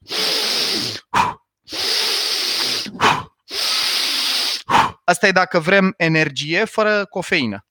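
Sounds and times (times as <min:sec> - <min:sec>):
forceful rapid inhaling breathing exercise: 0:00.0 - 0:05.1
speech: 0:01.2 - 0:01.4, 0:05.1 - 0:07.7.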